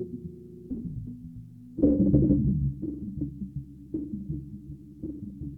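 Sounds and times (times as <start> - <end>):
drum: 1.8 - 5.5.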